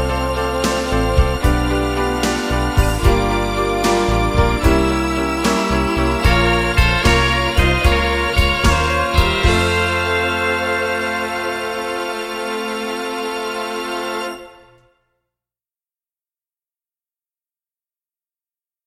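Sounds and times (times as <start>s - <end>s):
musical accompaniment: 0.0s - 15.0s.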